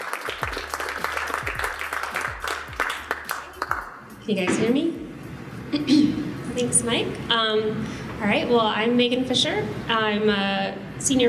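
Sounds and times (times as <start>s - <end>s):
crowd applause: 0.0s - 4.0s
speech: 4.3s - 5.0s, 5.7s - 11.2s.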